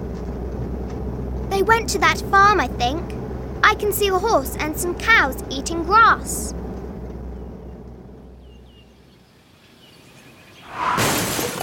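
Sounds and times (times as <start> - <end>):
low engine rumble: 0.0 - 9.3
speech: 1.6 - 6.6
car crashing into a tree: 10.7 - 11.6.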